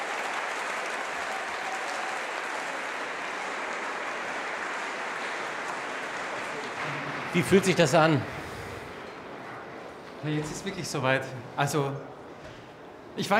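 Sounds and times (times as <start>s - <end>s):
concert audience giving a standing ovation: 0.0s - 9.0s
speech: 7.3s - 8.4s, 10.2s - 12.2s, 13.2s - 13.3s.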